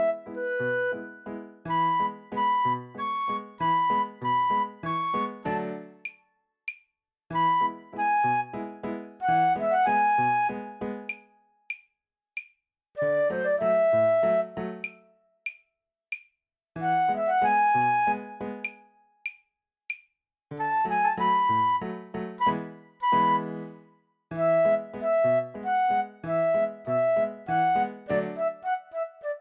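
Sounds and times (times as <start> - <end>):
flute: 0.0 - 6.0, 7.3 - 11.1, 13.0 - 15.1, 16.8 - 19.0, 20.6 - 29.3.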